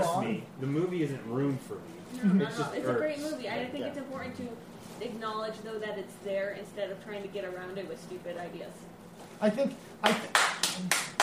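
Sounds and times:
speech: 0:00.0 - 0:11.0
loud hand claps: 0:10.0 - 0:11.2.

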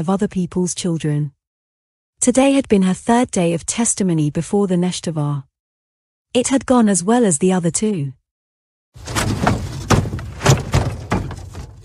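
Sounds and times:
speech: 0:00.0 - 0:01.4, 0:02.2 - 0:05.5, 0:06.3 - 0:08.2, 0:08.9 - 0:09.4
rocks hitting a house: 0:09.0 - 0:11.8.

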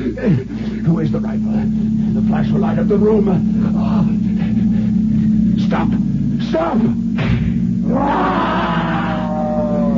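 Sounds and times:
speech: 0:00.2 - 0:04.6, 0:05.7 - 0:08.4
panther roaring: 0:07.8 - 0:09.9.

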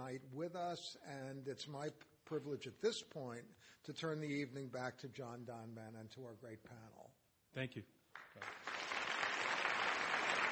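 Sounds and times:
speech: 0:00.0 - 0:08.8
audience applause: 0:08.1 - 0:10.4.

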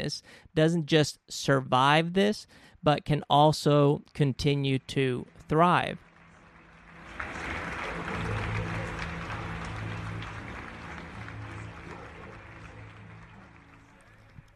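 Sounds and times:
speech: 0:00.0 - 0:06.0
applause: 0:05.2 - 0:14.5.

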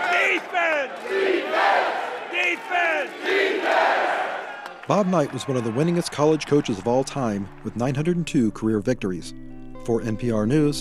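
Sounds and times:
crowd chanting: 0:00.0 - 0:07.8
speech: 0:04.9 - 0:10.7.

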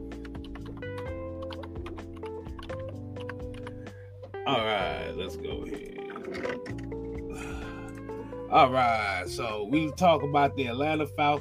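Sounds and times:
typing on a computer keyboard: 0:00.0 - 0:03.9, 0:06.1 - 0:07.2
speech: 0:04.5 - 0:07.7, 0:08.5 - 0:11.3.

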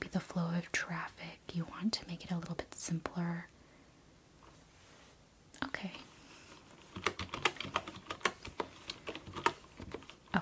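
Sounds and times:
speech: 0:00.1 - 0:03.6
typing on a wooden keyboard: 0:06.8 - 0:10.4.

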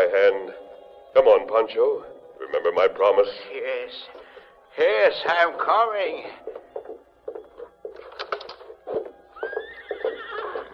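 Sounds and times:
speech: 0:01.2 - 0:04.2, 0:04.8 - 0:06.6
hoof clops and shuffling: 0:06.4 - 0:10.7
horse whinnying: 0:09.4 - 0:10.7.

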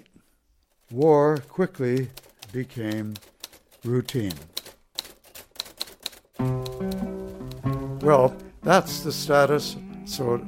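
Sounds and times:
typewriter keystrokes: 0:00.8 - 0:08.5
speech: 0:00.9 - 0:04.5, 0:08.0 - 0:10.4.

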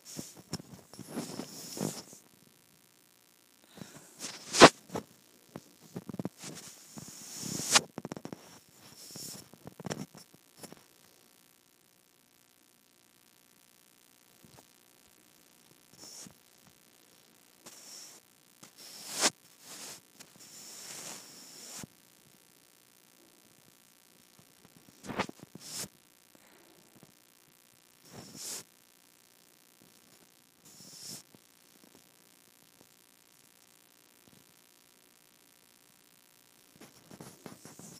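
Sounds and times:
microphone rubbed against skin: 0:00.0 - 0:02.3, 0:03.7 - 0:10.8, 0:15.9 - 0:16.4, 0:17.6 - 0:21.9, 0:24.6 - 0:25.9, 0:28.0 - 0:28.7, 0:30.7 - 0:31.3, 0:36.7 - 0:37.9.

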